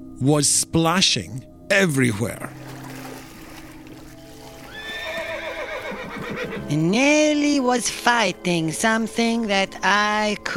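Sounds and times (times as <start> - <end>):
speech: 0.2 - 2.7, 6.7 - 10.5
horse neighing: 4.3 - 6.8.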